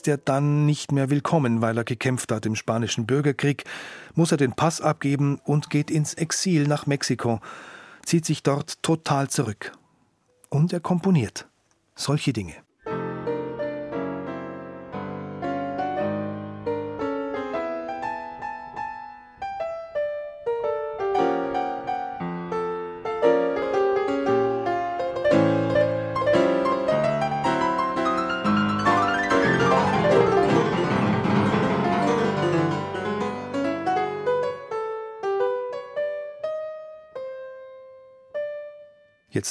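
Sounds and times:
speech: 0.0 - 9.8, 10.5 - 12.6
player piano playing jazzy early 20th-century style music: 12.8 - 39.2.

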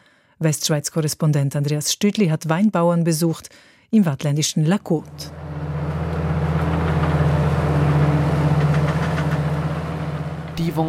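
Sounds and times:
speech: 0.4 - 5.4, 10.6 - 10.8
mechanical grape harvester working the vines at a winery above Gland: 5.0 - 10.8.

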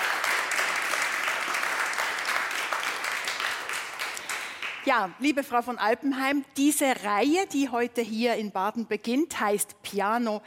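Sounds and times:
audience applause: 0.0 - 4.9
speech: 4.9 - 10.4.

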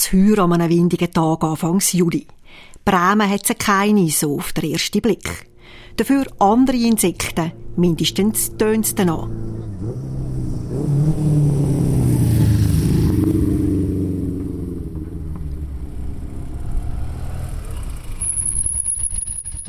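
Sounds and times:
speech: 0.0 - 10.1, 11.0 - 11.6
antique Vespa scooters racing on a mountain pass: 5.4 - 19.6.

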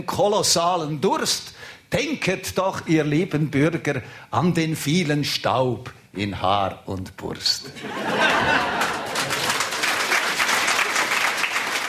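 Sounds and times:
speech: 0.0 - 8.7
laughter: 7.7 - 10.1
applause: 8.4 - 11.8.

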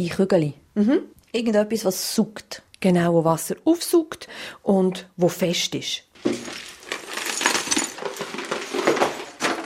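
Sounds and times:
speech: 0.0 - 6.6
broken clay pot shards poured into planter: 6.2 - 9.6.

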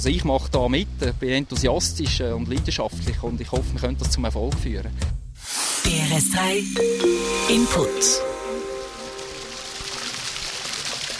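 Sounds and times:
speech: 0.0 - 5.2, 5.8 - 8.3
water splashing at a fish farm: 9.5 - 11.1.

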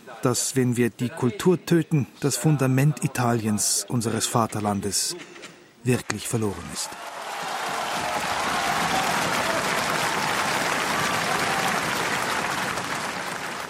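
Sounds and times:
speech: 0.1 - 7.2
sustained applause from a large audience: 6.8 - 13.6.

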